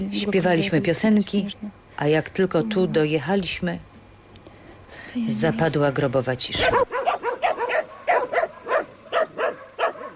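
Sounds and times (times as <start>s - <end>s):
speech: 0.0s - 3.9s, 4.9s - 7.0s
dogs barking: 6.6s - 10.1s.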